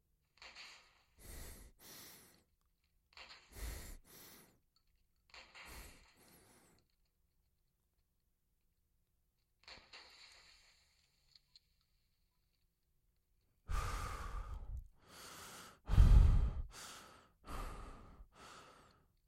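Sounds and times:
men breathing at various tempos: 1.2s - 2.4s, 3.2s - 4.6s, 13.7s - 19.1s.

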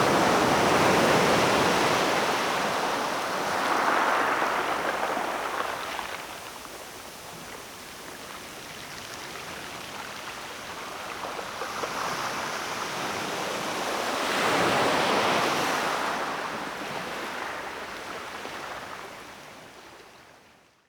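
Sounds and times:
waves on a pebble beach: 0.0s - 6.8s, 10.9s - 19.1s.

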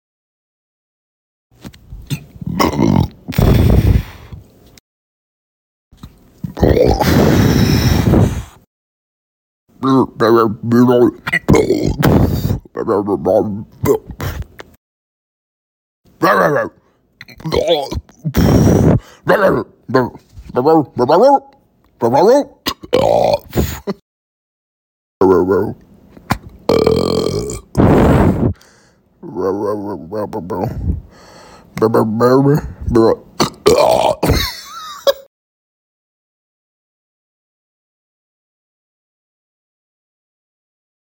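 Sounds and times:
man burping: 2.4s - 3.8s, 6.5s - 7.6s, 11.2s - 12.7s, 13.8s - 14.6s, 16.2s - 20.1s, 22.6s - 24.0s, 26.7s - 28.6s, 33.4s - 35.2s
man talking: 9.8s - 12.0s, 12.7s - 13.8s, 16.2s - 16.8s, 19.3s - 22.6s, 25.2s - 25.8s, 29.2s - 31.0s, 31.8s - 33.3s.

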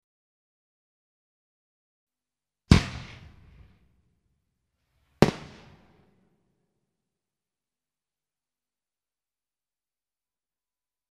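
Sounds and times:
mortar fire: 2.7s - 3.8s, 5.2s - 6.0s.

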